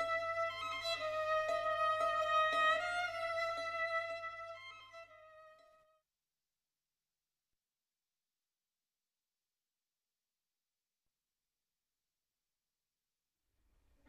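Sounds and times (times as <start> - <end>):
solo violin suite movement: 0.0 - 6.0.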